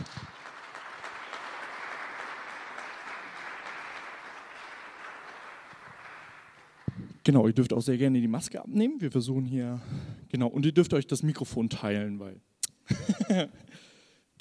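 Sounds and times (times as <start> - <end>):
audience applause: 0.0 - 7.2
speech: 7.2 - 14.3
laughter: 12.9 - 13.6.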